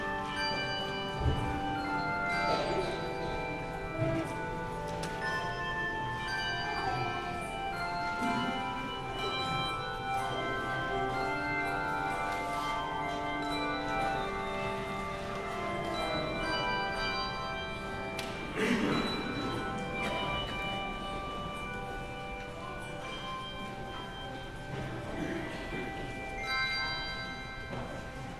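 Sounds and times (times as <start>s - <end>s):
handbells ringing: 0.0s - 28.3s.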